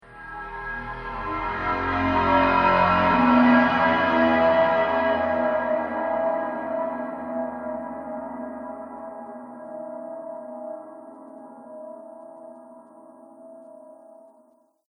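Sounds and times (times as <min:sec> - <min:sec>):
horror thriller transition effect: 0:00.1 - 0:09.6.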